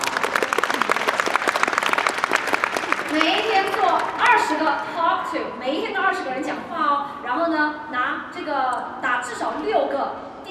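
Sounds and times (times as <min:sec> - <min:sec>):
audience applause: 0:00.0 - 0:04.4
speech: 0:03.2 - 0:10.3.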